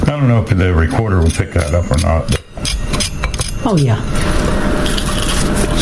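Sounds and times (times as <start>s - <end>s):
speech: 0.2s - 2.4s, 3.7s - 4.2s
crunching from biting into air-fried food: 4.3s - 5.8s.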